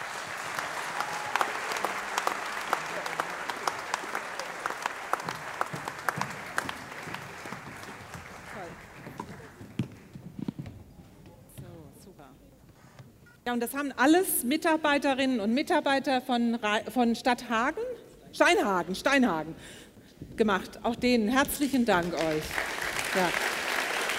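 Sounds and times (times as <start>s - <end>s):
audience applause for the children: 0.0s - 9.9s, 22.0s - 24.1s
speech: 13.5s - 19.8s, 20.4s - 23.5s.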